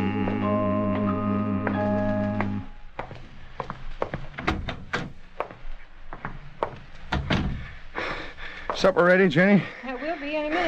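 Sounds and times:
sustained musical chord: 0.0 - 2.9
heavy footsteps climbing wooden stairs: 0.1 - 9.4
speech: 8.8 - 9.8.

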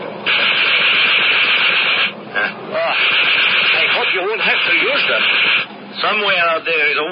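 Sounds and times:
aircraft machine guns test firing: 0.2 - 2.2, 3.0 - 5.7
speech: 4.6 - 7.1.

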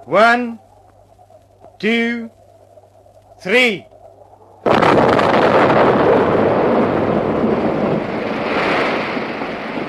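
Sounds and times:
speech: 0.0 - 0.6, 1.8 - 2.4, 3.4 - 3.9
explosion blowing up a dam: 4.6 - 9.8.

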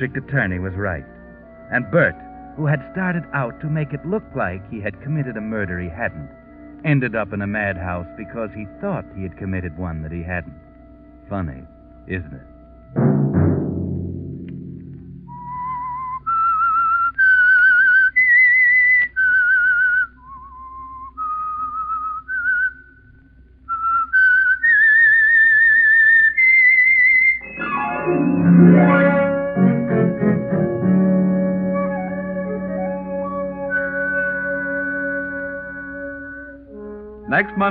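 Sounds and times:
speech: 0.0 - 10.6, 11.3 - 13.5, 37.4 - 37.7
eerie whistled radio theme melody: 0.0 - 13.0, 15.1 - 23.1, 23.7 - 37.7
orchestral music with strings and brass: 0.0 - 16.0, 27.4 - 37.7.

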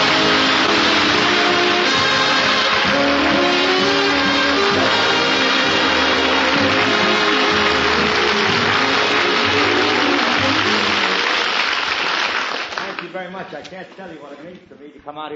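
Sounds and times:
audience applause: 0.0 - 13.4
speech: 13.5 - 15.3.

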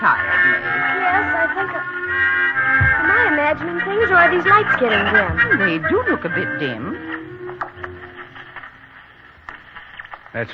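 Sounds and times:
speech: 0.0 - 1.8, 3.6 - 7.2, 10.3 - 10.5
crackling radio static while tuning stations: 0.0 - 10.5
sharp clicks and pops: 7.5 - 10.5.

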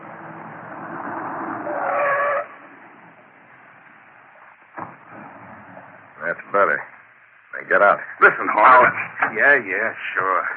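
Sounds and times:
car pulling up: 0.0 - 7.1
brakes squealing: 0.0 - 10.3
speech: 6.5 - 6.9, 7.7 - 10.5.

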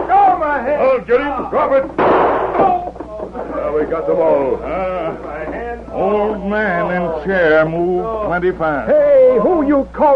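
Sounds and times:
raised strained voices: 0.0 - 10.1
speech: 0.7 - 2.4, 3.7 - 10.1
gunshot: 2.0 - 2.8.

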